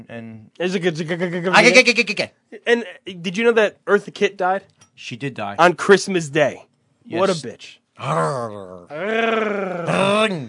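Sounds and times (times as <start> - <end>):
speech: 0.0 - 10.4
two men imitating cat meows: 8.0 - 10.4.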